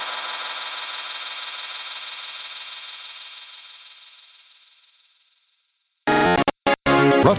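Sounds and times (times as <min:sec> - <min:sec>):
noise: 0:06.1 - 0:07.2.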